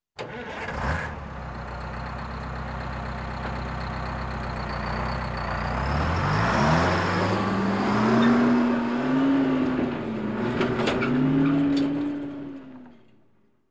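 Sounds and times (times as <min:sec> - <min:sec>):
18-wheeler truck engine cranking and leaving: 0:00.2 - 0:13.4.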